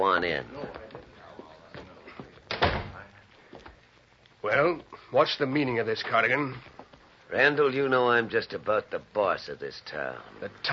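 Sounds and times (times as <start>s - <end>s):
speech: 0.0s - 0.9s, 4.5s - 6.7s, 7.3s - 10.7s
office door opening and closing: 2.5s - 3.0s.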